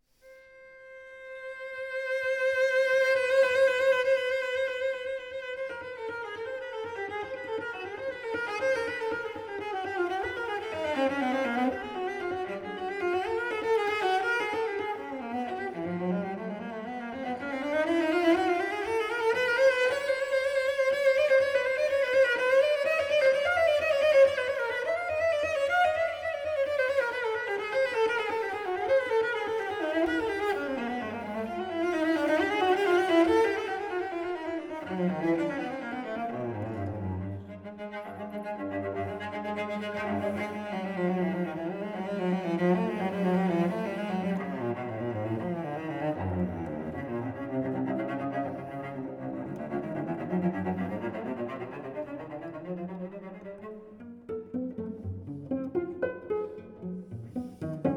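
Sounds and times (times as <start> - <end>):
string quartet playing arco and pizzicato: 0.4 - 57.9.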